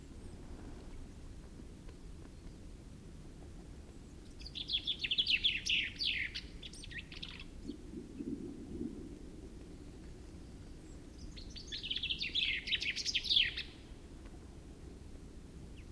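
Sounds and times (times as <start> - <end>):
common chaffinch Fringilla coelebs song: 3.9 - 7.8, 9.8 - 13.9.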